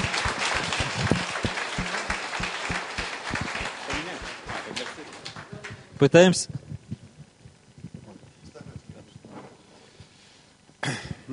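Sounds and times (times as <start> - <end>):
audience clapping: 0.0 - 6.1
speech: 6.0 - 6.6.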